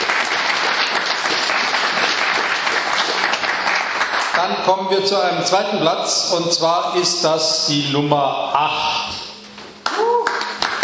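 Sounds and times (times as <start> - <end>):
audience applause: 0.0 - 5.3, 9.8 - 10.8
speech: 4.4 - 9.2.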